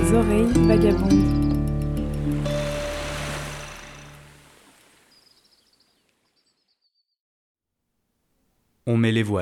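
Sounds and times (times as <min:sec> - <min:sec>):
speech: 0:00.1 - 0:01.4, 0:08.9 - 0:09.4
sea waves washing around the sailboat Aélic at sea: 0:01.5 - 0:05.7.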